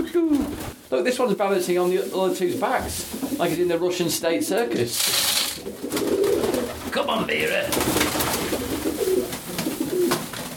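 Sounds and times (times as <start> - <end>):
speech: 0.1 - 6.0, 7.0 - 8.2
dove wings flapping: 0.3 - 0.8, 5.0 - 10.5
doves cooing: 5.6 - 10.5.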